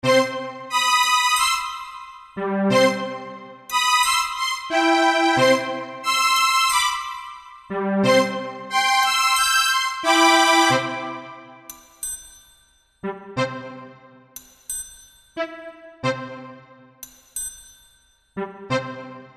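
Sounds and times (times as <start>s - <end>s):
goofy orchestra music: 0.0s - 11.7s, 13.0s - 14.0s, 15.4s - 16.6s, 18.4s - 19.3s.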